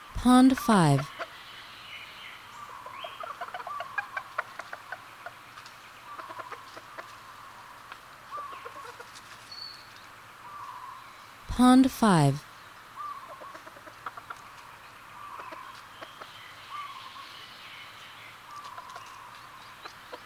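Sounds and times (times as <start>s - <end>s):
background hiss: 0.0s - 20.2s
speech: 0.2s - 1.1s, 11.6s - 12.5s
other birds chirping and whistling: 0.9s - 11.4s, 12.4s - 20.2s
Red junglefowl clucking: 2.6s - 9.2s, 13.0s - 17.0s, 18.6s - 20.2s.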